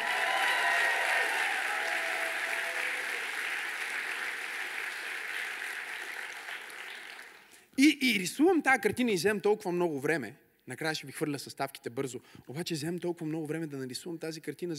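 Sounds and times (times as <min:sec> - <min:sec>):
audience applause: 0:00.0 - 0:07.5
speech: 0:07.8 - 0:14.7.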